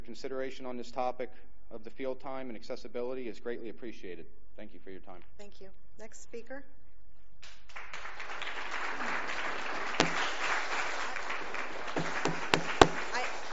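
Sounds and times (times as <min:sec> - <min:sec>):
speech: 0:00.1 - 0:06.8
audience clapping: 0:07.4 - 0:13.5.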